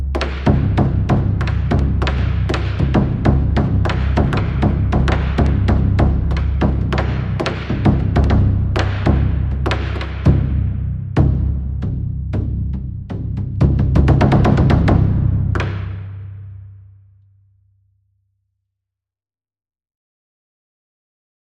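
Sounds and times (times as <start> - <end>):
simple taiko drum: 0.0 - 16.9.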